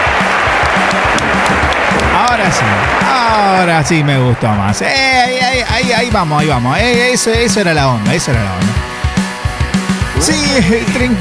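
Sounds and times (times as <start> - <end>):
audience applause: 0.0 - 6.6
speech: 2.3 - 9.0, 10.2 - 11.2.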